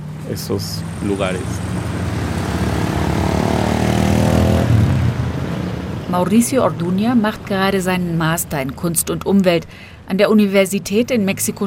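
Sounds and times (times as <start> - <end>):
urban traffic noise: 0.0 - 11.6
speech: 0.3 - 2.0, 6.1 - 11.6.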